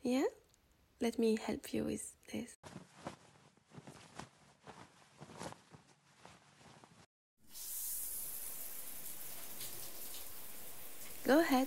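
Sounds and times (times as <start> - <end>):
speech: 1.0 - 2.9, 11.3 - 11.6
hot shower running: 7.4 - 11.6.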